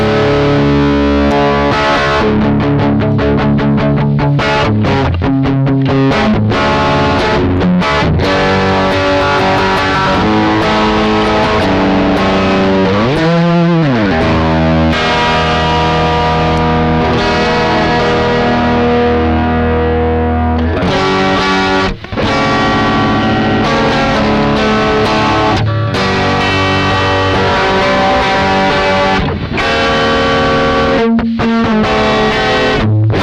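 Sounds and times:
electric guitar through a pedal with the drive maxed: 0.0s - 33.2s.

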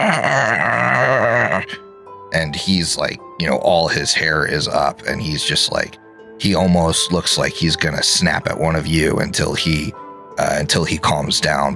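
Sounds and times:
person imitating an animal's growl: 0.0s - 1.8s
speech: 2.4s - 11.7s.

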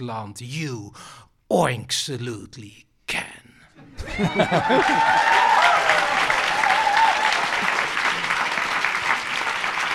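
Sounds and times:
speech: 0.0s - 3.4s, 4.0s - 5.4s
laughter: 3.8s - 6.6s, 7.2s - 8.7s
audience applause after a humorous poem reading: 4.0s - 9.9s.

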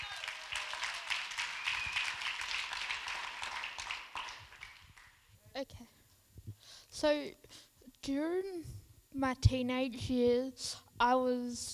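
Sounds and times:
audience round of applause: 0.0s - 5.2s
speech: 7.0s - 11.7s.

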